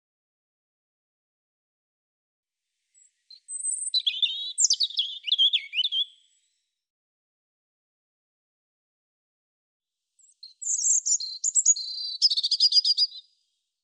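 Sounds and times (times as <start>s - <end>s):
European robin singing: 2.9s - 6.5s, 10.2s - 13.3s.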